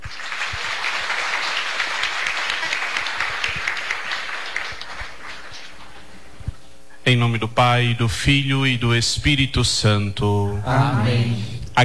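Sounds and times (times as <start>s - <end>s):
audience applause: 0.0s - 6.2s
speech: 7.1s - 11.8s.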